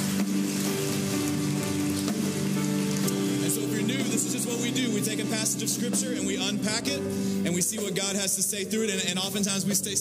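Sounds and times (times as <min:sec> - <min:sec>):
church audience applause: 0:00.0 - 0:04.7
speech: 0:04.5 - 0:09.9.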